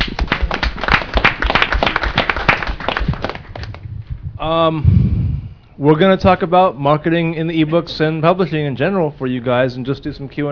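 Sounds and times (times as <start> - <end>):
audience applause: 0.0 - 3.8
speech: 4.4 - 5.1, 5.8 - 10.5.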